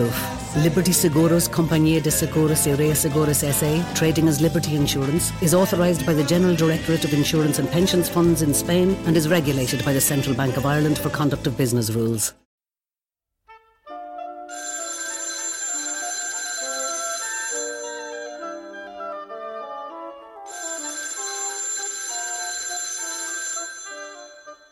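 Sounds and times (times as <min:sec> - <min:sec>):
speech: 0:00.0 - 0:12.4
telephone ringing: 0:14.5 - 0:19.1, 0:20.5 - 0:24.7.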